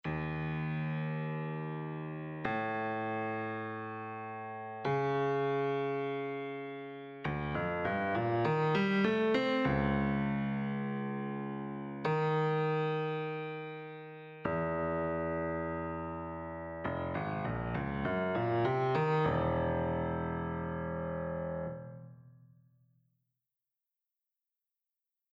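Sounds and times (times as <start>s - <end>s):
grand piano arpeggio: 0.0s - 22.2s.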